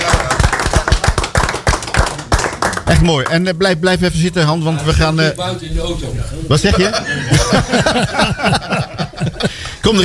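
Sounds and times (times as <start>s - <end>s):
audience applause: 0.0s - 3.3s
speech: 2.9s - 10.0s
laughter: 6.6s - 10.0s.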